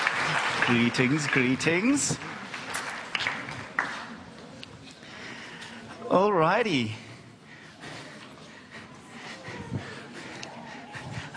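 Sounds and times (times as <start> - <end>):
audience applause: 0.0 - 4.4
speech: 0.7 - 2.4, 6.1 - 7.0.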